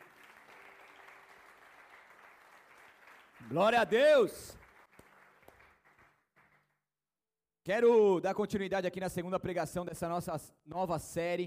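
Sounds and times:
audience applause: 0.0 - 6.9
speech: 3.4 - 4.6, 7.7 - 11.4.

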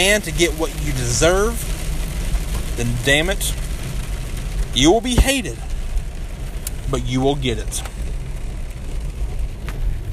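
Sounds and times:
speech: 0.0 - 1.7, 2.8 - 3.6, 4.8 - 5.7, 6.9 - 7.9
heavy rain pouring over a moving car: 0.0 - 10.1
road and engine rumble: 0.0 - 10.1.

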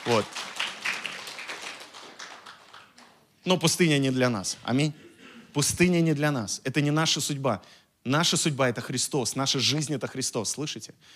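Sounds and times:
audience clapping hands: 0.0 - 3.3
speech: 0.1 - 0.5, 3.4 - 11.1.

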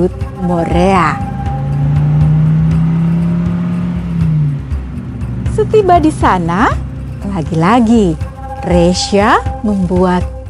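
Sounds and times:
speech: 0.0 - 1.3, 5.6 - 10.4
car driving off: 0.0 - 9.7.

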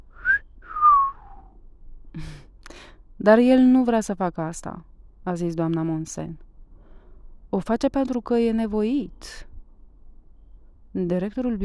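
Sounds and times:
person whistling: 0.1 - 1.5
speech: 3.2 - 6.5, 7.5 - 9.5, 10.9 - 11.6.

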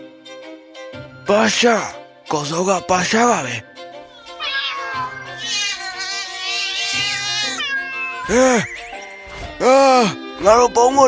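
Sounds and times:
speech: 1.3 - 3.7, 8.3 - 8.8, 9.6 - 11.0
cat meowing: 4.1 - 9.0.

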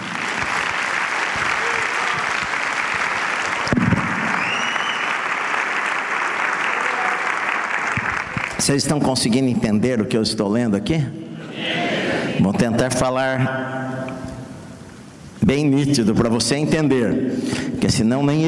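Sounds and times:
audience applauding: 0.0 - 8.8
speech: 8.7 - 11.3, 12.4 - 13.8, 15.4 - 18.4.

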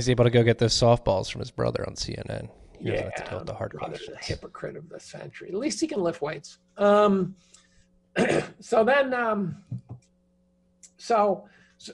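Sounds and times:
speech: 0.0 - 7.6, 8.2 - 9.9, 11.0 - 11.9
man clearing throat: 8.2 - 8.6
man coughing into a microphone: 8.2 - 8.6.

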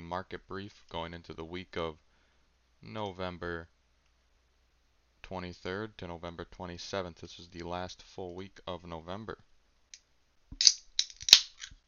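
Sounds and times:
speech: 0.1 - 2.1, 2.8 - 3.8, 5.2 - 9.5
Bang Energy drink can being cracked open: 10.6 - 11.8.

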